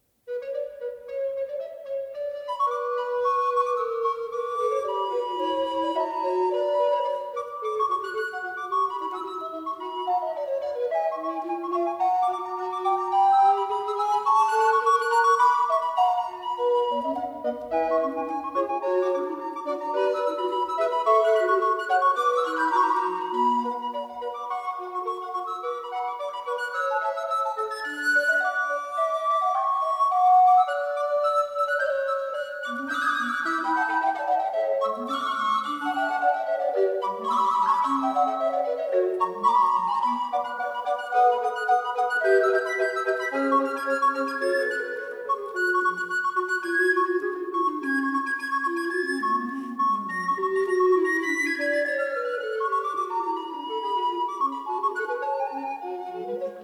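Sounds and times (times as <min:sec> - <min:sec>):
classical concerto in C minor: 0:00.0 - 0:56.6.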